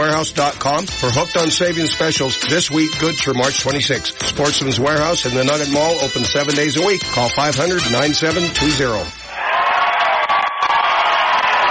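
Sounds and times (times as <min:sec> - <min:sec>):
speech: 0:00.2 - 0:09.2
crowd cheering in a packed gym at a final game: 0:09.3 - 0:11.7.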